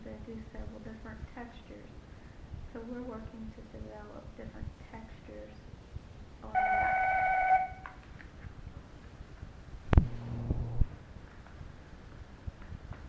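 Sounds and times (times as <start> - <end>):
speech: 2.8 - 5.7
telephone tone: 6.6 - 7.8
short low buzz: 9.9 - 11.0.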